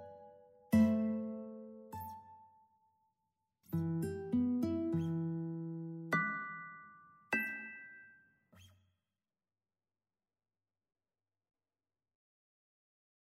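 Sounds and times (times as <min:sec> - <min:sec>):
guitar in a studio: 0:00.0 - 0:02.7, 0:03.6 - 0:08.7.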